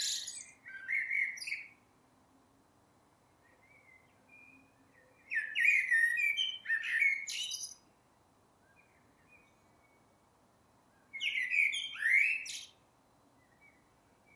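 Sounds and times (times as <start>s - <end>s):
Eurasian blackbird Turdus merula singing mellow fluting phrases: 0.0s - 1.8s, 3.4s - 7.8s, 11.1s - 12.8s.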